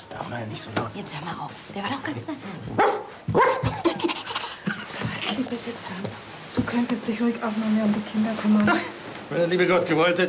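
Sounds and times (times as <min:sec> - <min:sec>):
speech: 0:00.1 - 0:04.3, 0:05.4 - 0:10.2
small dog barking: 0:02.8 - 0:03.7.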